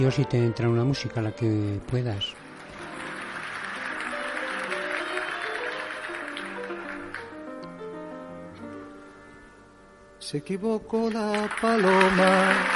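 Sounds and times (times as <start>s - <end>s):
speech: 0.0s - 2.4s, 10.3s - 12.7s
audience applause at start of live song: 2.4s - 7.5s, 11.2s - 12.7s.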